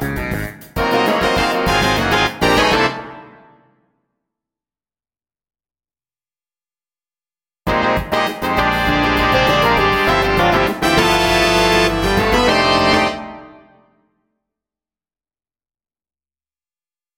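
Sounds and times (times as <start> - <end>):
auxiliary percussion playalong in funk and jazz style: 0.0 - 3.0, 7.7 - 13.1.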